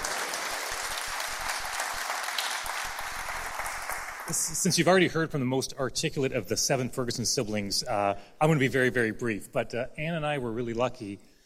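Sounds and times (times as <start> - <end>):
audience applause: 0.0 - 4.4
speech: 4.3 - 11.3.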